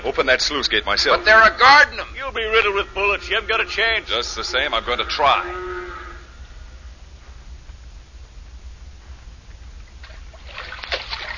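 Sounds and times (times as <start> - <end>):
speech: 0.0 - 5.7
low steady hum: 0.0 - 11.3
water splashing from someone swimming across an impounded lake: 10.0 - 11.3.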